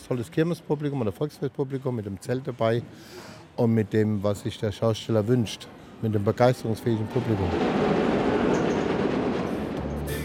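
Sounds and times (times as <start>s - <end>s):
speech: 0.1s - 8.1s
wooden roller coaster rattling along its track: 7.1s - 10.1s.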